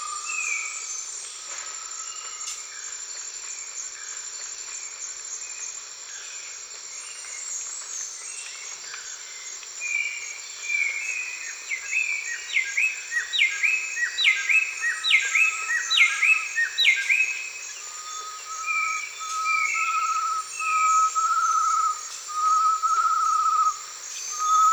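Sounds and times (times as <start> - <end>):
high insect hiss in a Costa Rican forest at dawn: 0.0 - 24.7
bird whistles and chirping in a Costa Rican forest: 18.0 - 24.7.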